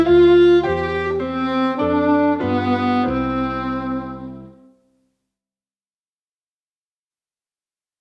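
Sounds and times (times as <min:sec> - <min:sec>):
alto playing French folk song: 0:00.0 - 0:04.7.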